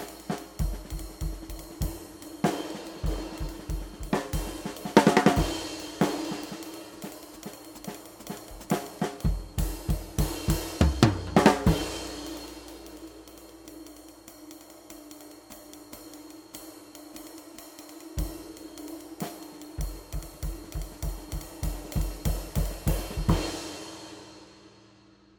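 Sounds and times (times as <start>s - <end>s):
22-inch Bosphorus Master flat ride cymbal: 0.0s - 25.2s.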